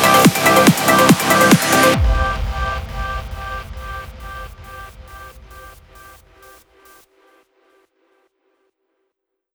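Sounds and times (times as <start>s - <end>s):
trance mix: 0.0s - 6.6s.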